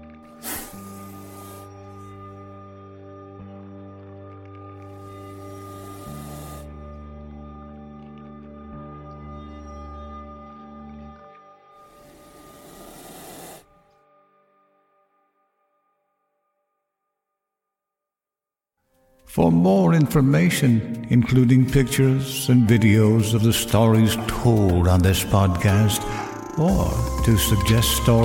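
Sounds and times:
hissing outside the window: 0.3 - 2.3, 4.9 - 6.7, 11.8 - 13.8
speech: 19.4 - 28.2.

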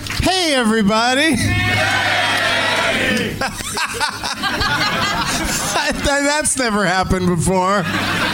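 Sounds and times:
speech: 0.3 - 2.2, 3.0 - 8.3
crowd shouting hey back in unison: 1.5 - 3.4
people chuckling: 3.3 - 6.3, 7.1 - 8.3.

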